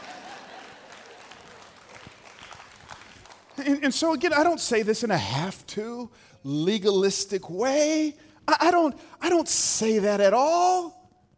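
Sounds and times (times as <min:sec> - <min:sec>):
few people clapping: 0:00.0 - 0:03.7
speech: 0:03.6 - 0:11.0.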